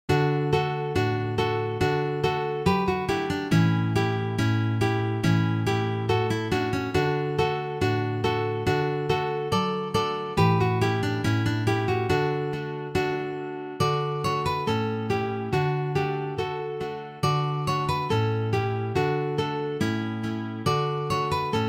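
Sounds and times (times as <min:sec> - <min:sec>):
guitars: 0:00.1 - 0:21.6.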